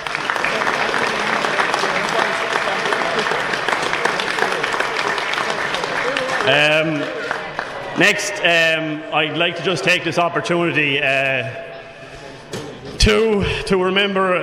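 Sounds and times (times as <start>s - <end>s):
audience round of applause: 0.0s - 8.6s
speech: 6.5s - 7.2s, 8.0s - 11.7s, 13.0s - 14.4s.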